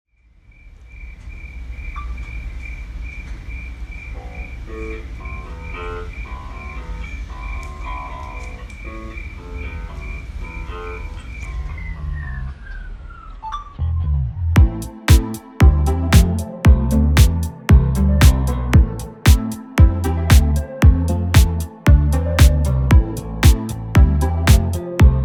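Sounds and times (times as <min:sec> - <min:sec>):
instrumental music: 0:14.6 - 0:25.2.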